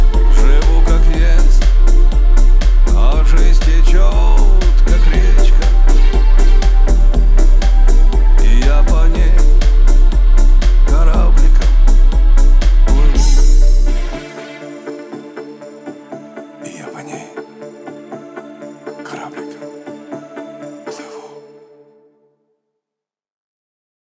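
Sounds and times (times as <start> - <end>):
31-33-35 Hz low bass tones: 0.0 - 14.5.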